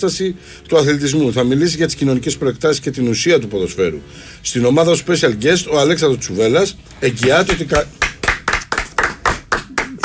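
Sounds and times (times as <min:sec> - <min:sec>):
speech: 0:00.0 - 0:08.1
hand clapping by one person: 0:07.2 - 0:10.0.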